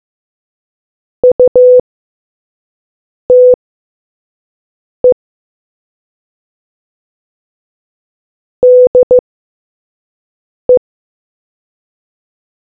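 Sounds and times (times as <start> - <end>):
morse code beeps: 1.2 - 1.8, 3.3 - 3.6, 8.6 - 9.2.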